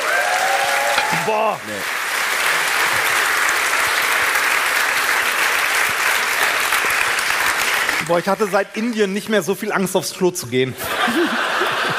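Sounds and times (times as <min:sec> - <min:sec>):
audience applause: 0:00.0 - 0:09.6
speech: 0:01.3 - 0:02.0, 0:08.1 - 0:11.3
laughter: 0:10.7 - 0:11.9.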